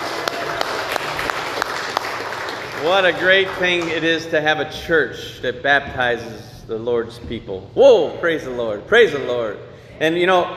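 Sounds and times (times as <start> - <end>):
church congregation applause during a baptism service: 0.0 - 4.3
speech: 2.8 - 10.5.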